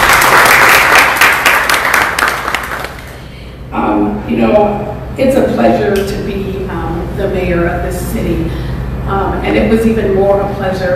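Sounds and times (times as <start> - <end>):
audience applause: 0.0 - 3.2
speech: 4.3 - 6.5, 7.2 - 10.9.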